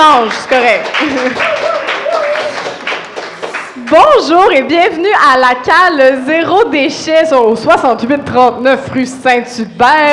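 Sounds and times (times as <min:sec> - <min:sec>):
speech: 0:00.2 - 0:01.8, 0:03.9 - 0:10.1
audience applause: 0:00.2 - 0:03.8
laughter: 0:01.0 - 0:02.6.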